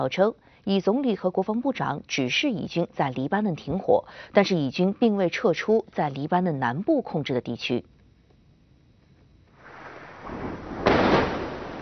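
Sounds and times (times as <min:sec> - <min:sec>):
speech: 0:00.0 - 0:08.0
huge explosion from an airstrike: 0:09.6 - 0:11.8.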